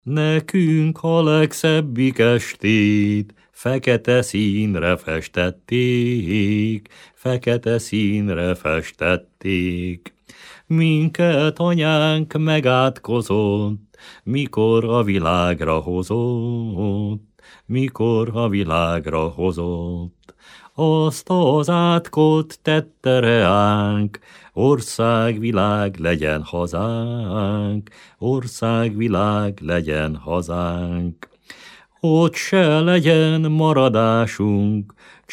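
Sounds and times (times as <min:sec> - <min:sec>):
Hungarian folk song: 0:00.0 - 0:35.3.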